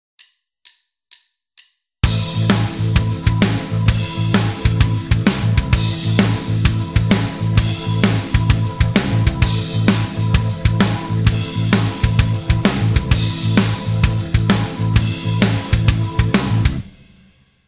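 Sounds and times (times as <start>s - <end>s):
backing music: 2.0s - 17.3s.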